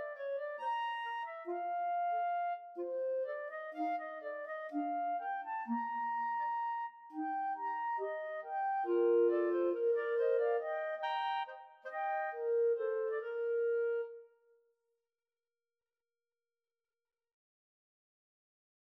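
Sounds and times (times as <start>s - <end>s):
clarinet trio playing: 0.0s - 14.2s.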